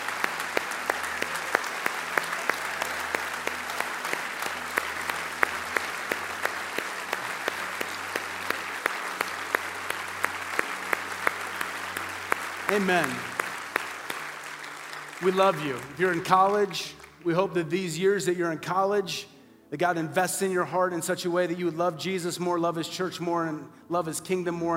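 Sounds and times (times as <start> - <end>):
audience applauding: 0.0 - 17.3
speech: 12.7 - 13.3, 15.2 - 24.7.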